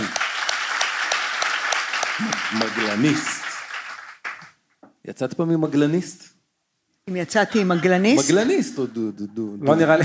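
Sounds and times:
crowd applauding: 0.0s - 4.6s
speech: 2.2s - 3.4s, 5.0s - 6.3s, 7.1s - 10.0s
laughter: 7.4s - 8.7s.

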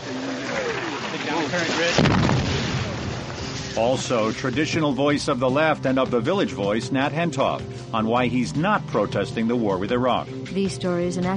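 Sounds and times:
explosions in a firefight on the road to Mosul in northern Iraq: 0.5s - 4.6s
speech: 1.5s - 2.4s, 3.8s - 11.3s
gunfire in a firefight at a bridge on the road to Mosul in northern Iraq: 1.5s - 3.8s.

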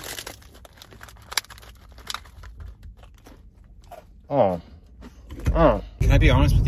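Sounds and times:
soft crinkling: 0.0s - 4.2s
crunching and chewing Christmas cookies: 0.0s - 5.7s
speech: 4.3s - 4.7s, 5.5s - 6.6s.

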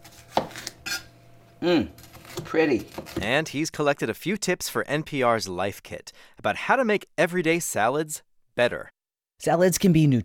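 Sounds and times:
knife chopping red bell pepper: 0.1s - 1.1s
speech: 1.6s - 10.2s.

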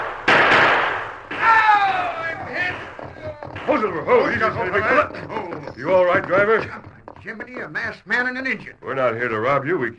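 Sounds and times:
gunfire from charging riders: 0.0s - 4.2s
speech: 3.8s - 9.9s.

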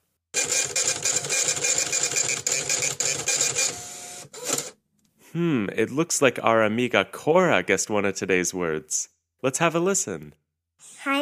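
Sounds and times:
printer printing out a printout: 0.4s - 4.7s
speech: 5.3s - 10.4s.

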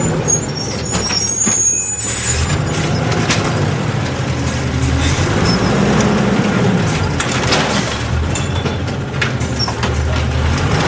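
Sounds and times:
high squeaks and whines: 0.0s - 3.4s
garbage truck engine rumbling: 0.0s - 10.8s
clanks and knocks: 2.6s - 10.8s.

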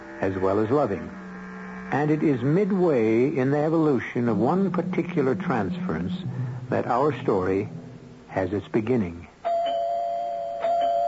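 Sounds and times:
speech: 0.2s - 1.2s, 1.9s - 7.8s, 8.4s - 9.3s
doorbell ringing: 9.4s - 11.0s.

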